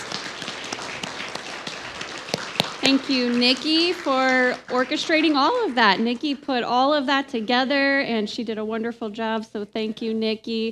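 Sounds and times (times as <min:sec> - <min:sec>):
crowd applauding: 0:00.0 - 0:07.0
speech: 0:02.9 - 0:10.7.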